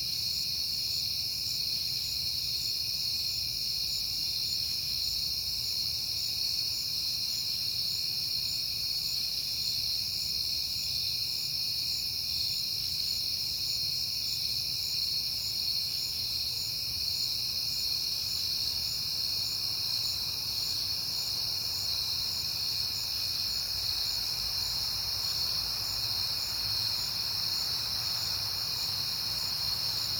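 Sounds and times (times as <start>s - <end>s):
crickets chirping chorus: 0.0s - 30.1s.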